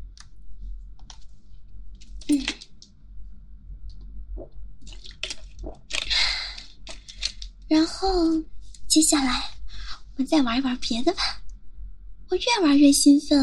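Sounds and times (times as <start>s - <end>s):
person sipping water and swallowing: 4.4s - 7.0s
speech: 7.7s - 9.5s, 10.2s - 11.4s, 12.3s - 13.4s.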